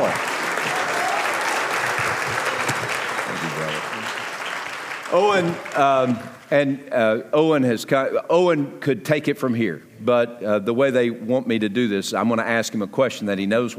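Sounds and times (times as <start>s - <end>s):
audience applause welcoming a guest at First Norfolk: 0.0s - 6.5s
speech: 5.2s - 13.7s.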